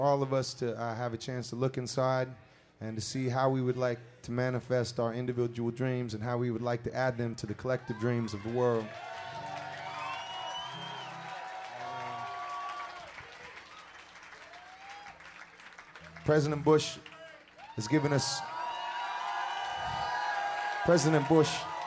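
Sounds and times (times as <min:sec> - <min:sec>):
speech: 0:00.0 - 0:09.2, 0:16.3 - 0:17.1, 0:17.8 - 0:18.5, 0:20.8 - 0:21.7
crowd cheering and applauding: 0:07.8 - 0:21.8.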